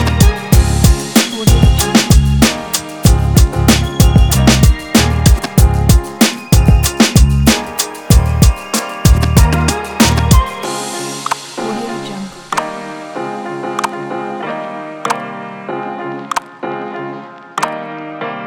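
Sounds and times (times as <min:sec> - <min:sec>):
upbeat hip hop beat: 0:00.0 - 0:14.3.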